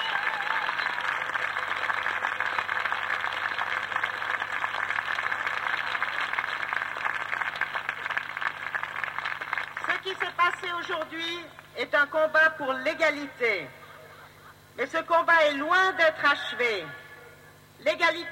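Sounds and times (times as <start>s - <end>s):
crowd applauding a speaker: 0.0s - 10.4s
speech: 10.5s - 13.8s, 14.8s - 17.0s, 17.8s - 18.3s.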